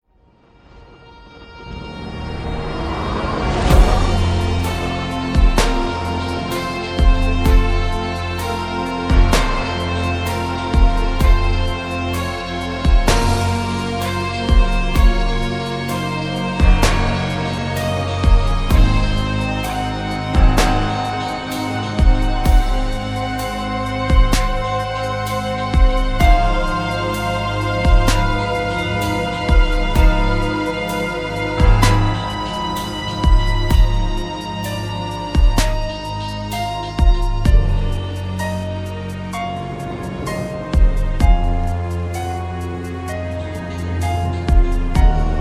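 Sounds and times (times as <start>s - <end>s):
slow string orchestra piece: 0.3s - 45.3s.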